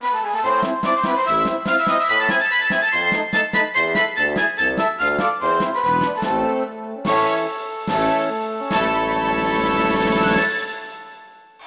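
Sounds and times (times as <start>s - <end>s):
club background music: 0.0s - 11.5s.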